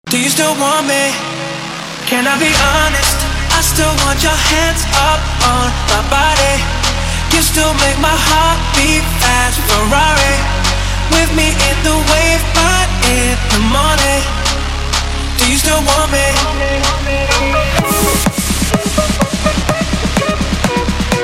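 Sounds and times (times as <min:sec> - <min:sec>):
club party dance music: 0:00.1 - 0:21.2.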